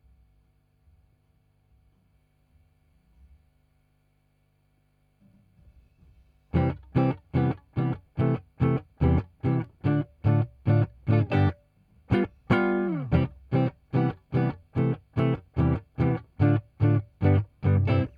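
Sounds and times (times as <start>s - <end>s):
guitar: 6.5s - 18.1s.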